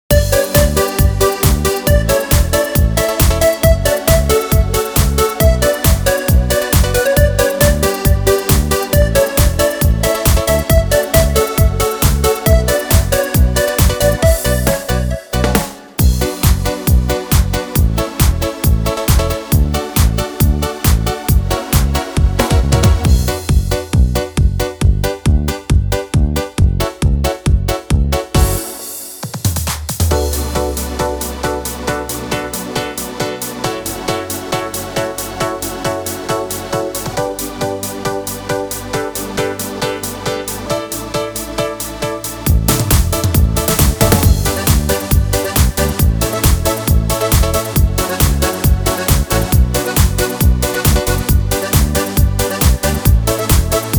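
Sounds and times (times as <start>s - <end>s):
music beat: 0.1s - 53.9s.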